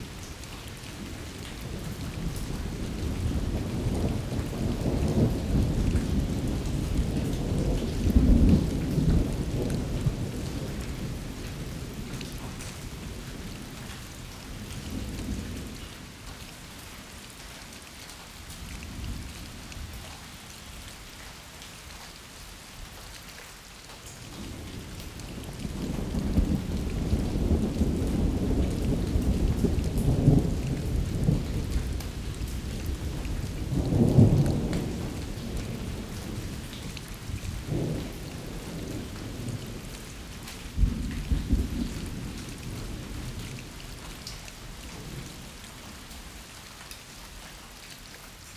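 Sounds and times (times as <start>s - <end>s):
rain: 0.0s - 48.5s
thunder: 1.2s - 13.1s, 24.4s - 43.6s.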